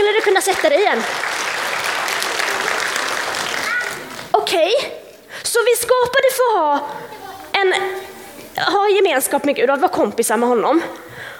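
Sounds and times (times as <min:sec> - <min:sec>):
audience applause: 0:00.0 - 0:04.3
speech: 0:00.3 - 0:01.4, 0:04.5 - 0:11.2.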